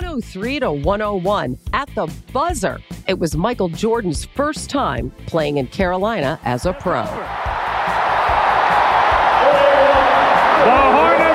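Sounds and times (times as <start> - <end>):
speech: 0.2 - 7.5
arena crowd cheering as the Charlotte Hornets beat the Chicago Bulls: 6.5 - 11.3.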